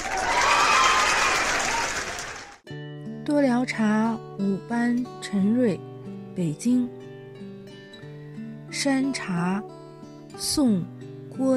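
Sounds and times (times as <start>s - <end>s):
audience applause: 0.0s - 2.6s
speech: 3.3s - 7.0s, 8.8s - 9.8s, 10.4s - 11.5s.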